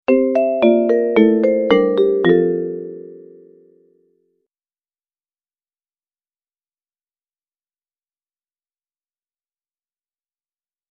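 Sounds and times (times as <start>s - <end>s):
vibraphone: 0.1s - 4.0s.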